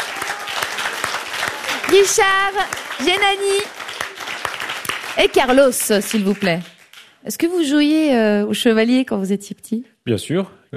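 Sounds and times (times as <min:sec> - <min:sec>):
audience applauding: 0:00.0 - 0:07.3
speech: 0:01.9 - 0:03.8, 0:05.2 - 0:10.7.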